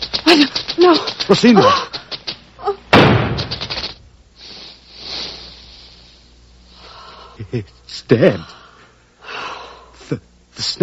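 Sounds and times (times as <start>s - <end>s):
speech: 0.3s - 2.0s, 7.5s - 8.6s, 10.1s - 10.8s
gunshot: 2.9s - 3.7s.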